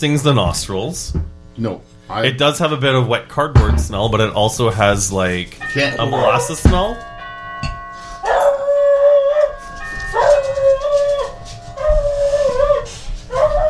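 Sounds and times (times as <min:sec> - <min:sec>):
speech: 0:00.0 - 0:07.7
faint sustained chime-like tone: 0:05.6 - 0:13.3
dog barking at the doorbell: 0:08.2 - 0:13.6.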